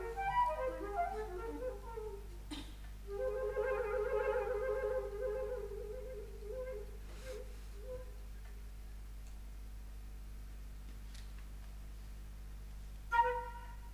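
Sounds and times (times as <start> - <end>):
flute: 0.0 - 8.3, 13.1 - 13.9.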